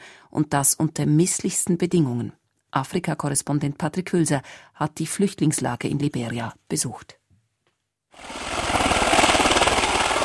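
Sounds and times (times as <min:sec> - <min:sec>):
speech: 0:00.3 - 0:07.2, 0:08.2 - 0:08.5
Russian transport helicopter flying over rainforest: 0:08.2 - 0:10.2.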